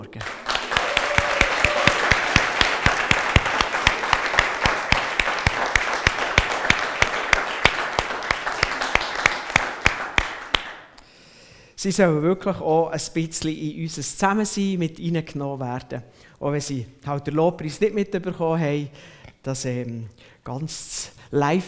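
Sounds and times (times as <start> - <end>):
audience applauding: 0.0 - 10.9
speech: 0.1 - 0.4, 11.8 - 21.6.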